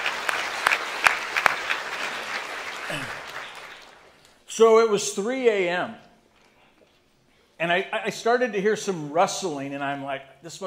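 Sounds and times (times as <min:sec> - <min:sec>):
audience applause: 0:00.0 - 0:04.2
speech: 0:02.9 - 0:03.2, 0:04.6 - 0:06.1, 0:07.6 - 0:10.6.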